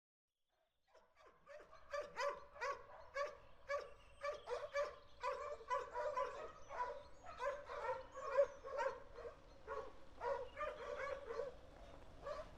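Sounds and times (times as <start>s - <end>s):
dog barking: 0.9s - 12.5s.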